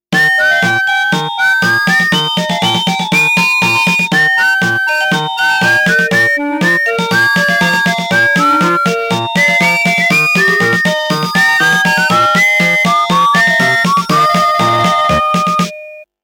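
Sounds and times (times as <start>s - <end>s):
melody: 0.2s - 16.1s.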